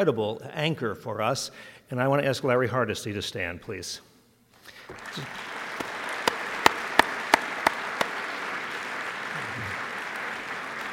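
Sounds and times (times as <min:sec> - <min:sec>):
speech: 0:00.0 - 0:04.1, 0:04.9 - 0:05.5
audience applause: 0:04.8 - 0:10.9.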